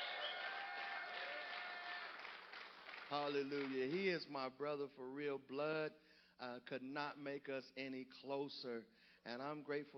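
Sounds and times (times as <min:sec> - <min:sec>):
audience clapping hands: 0:00.0 - 0:04.0
speech: 0:03.1 - 0:09.9.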